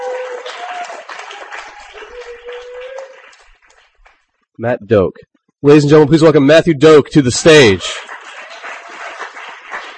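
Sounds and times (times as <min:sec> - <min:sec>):
audience applauding a performer at a live reading event: 0:00.0 - 0:04.3, 0:07.4 - 0:09.9
speech: 0:04.6 - 0:08.1.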